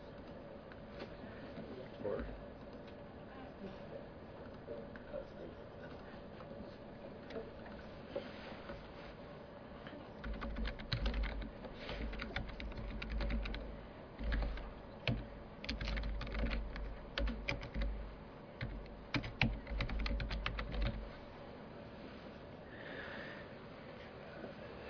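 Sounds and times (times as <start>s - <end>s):
low steady hum: 0.0s - 24.8s
typing on a computer keyboard entering an address: 10.2s - 13.6s, 14.2s - 18.0s, 18.6s - 21.0s.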